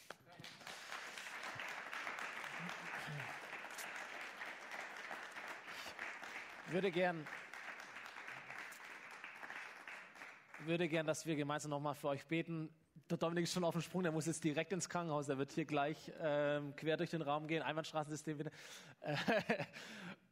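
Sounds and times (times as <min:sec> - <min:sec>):
applause: 0:00.0 - 0:11.2
laughter: 0:02.4 - 0:03.6
speech: 0:06.7 - 0:07.4, 0:10.6 - 0:20.1.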